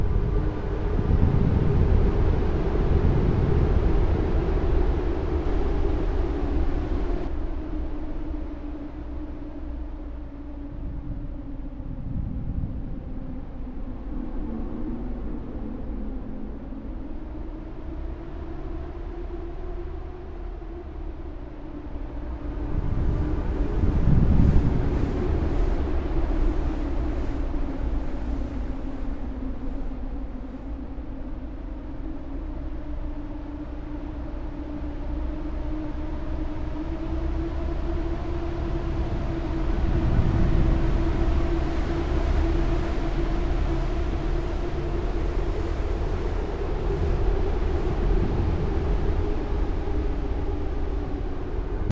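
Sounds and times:
ambient wind: 0.0s - 51.9s.

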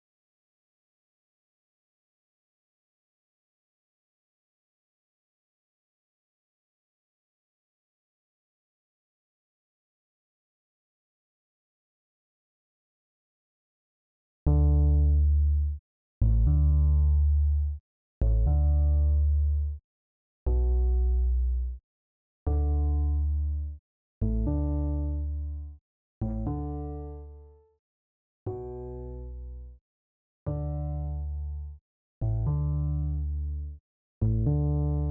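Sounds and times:
bass: 14.4s - 19.8s, 20.4s - 21.8s, 22.4s - 27.7s, 28.5s - 29.8s, 30.5s - 35.0s.

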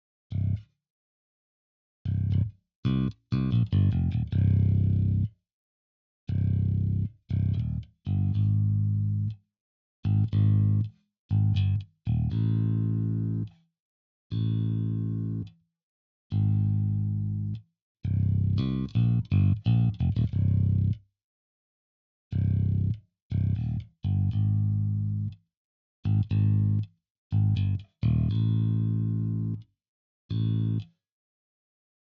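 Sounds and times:
bass: 0.0s - 0.8s, 2.0s - 5.4s, 6.3s - 9.4s, 10.0s - 13.7s, 14.3s - 15.6s, 16.3s - 21.1s, 22.3s - 25.4s, 26.0s - 29.7s, 30.3s - 31.0s.

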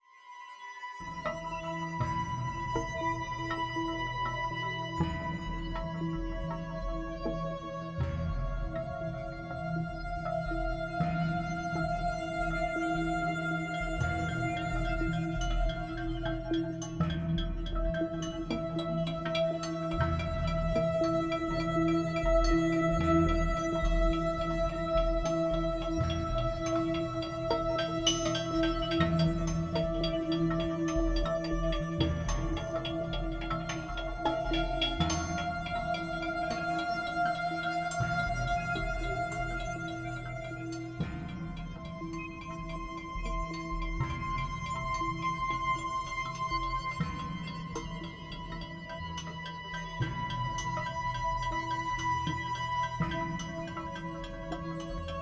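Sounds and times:
music: 0.0s - 55.1s.

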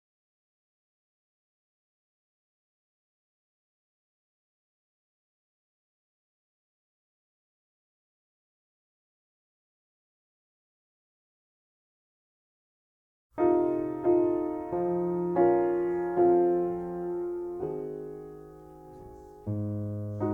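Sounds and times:
piano: 13.3s - 20.3s.

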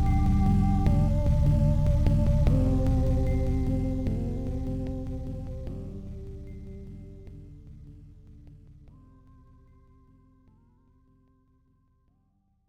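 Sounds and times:
ceremonial music: 0.0s - 7.4s.

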